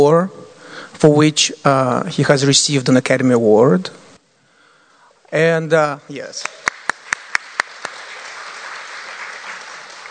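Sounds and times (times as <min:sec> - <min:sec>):
speech: 0:00.0 - 0:00.4, 0:01.0 - 0:04.1, 0:05.3 - 0:06.6
group applause: 0:06.4 - 0:10.0
sharp claps: 0:06.4 - 0:10.0.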